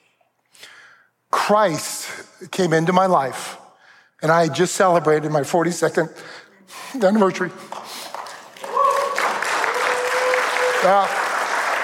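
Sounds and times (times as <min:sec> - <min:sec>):
speech: 0:01.5 - 0:03.6, 0:04.2 - 0:07.9, 0:10.8 - 0:11.2
audience applause: 0:07.7 - 0:11.8.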